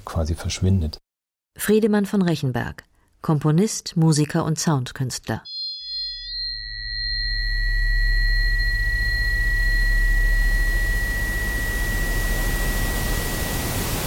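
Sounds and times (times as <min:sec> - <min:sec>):
speech: 0:00.1 - 0:01.0, 0:01.6 - 0:05.6
broadband noise across all frequencies: 0:05.5 - 0:14.0.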